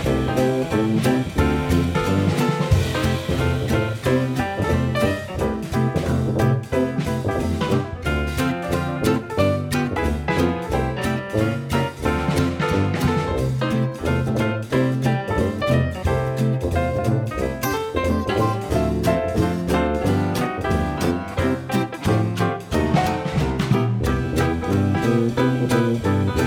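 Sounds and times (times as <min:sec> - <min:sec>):
swing music: 0:00.0 - 0:26.4.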